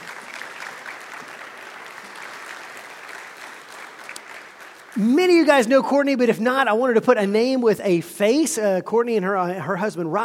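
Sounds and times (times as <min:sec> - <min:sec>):
church congregation applauding a ministry leader: 0:00.0 - 0:06.3
speech: 0:05.0 - 0:10.2.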